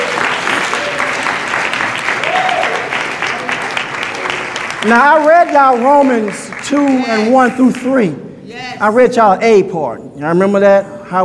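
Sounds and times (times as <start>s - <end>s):
audience clapping hands: 0.0s - 8.1s
speech: 4.8s - 11.2s.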